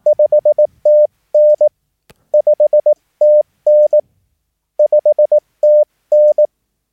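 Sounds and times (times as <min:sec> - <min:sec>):
Morse code CW signal report tone: 0:00.0 - 0:01.7, 0:02.4 - 0:04.0, 0:04.8 - 0:06.5.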